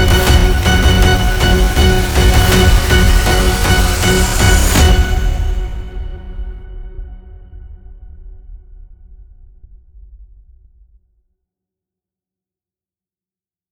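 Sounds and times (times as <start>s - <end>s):
tense violin: 0.0s - 7.5s.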